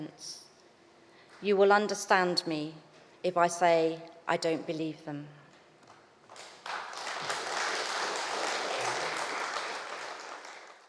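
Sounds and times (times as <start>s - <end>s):
speech: 0.1s - 0.4s, 1.4s - 5.4s
lengthy crowd applause: 6.3s - 10.8s.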